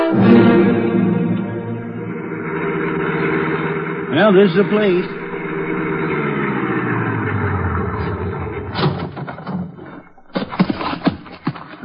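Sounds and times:
car engine idling: 0.0 - 11.5
speech: 4.2 - 5.2
knocks: 8.7 - 11.8.

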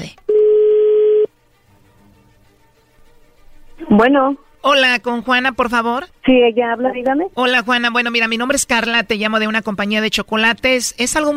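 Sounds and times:
telephone tone as a call is dialed: 0.3 - 1.3
speech: 3.9 - 11.3.

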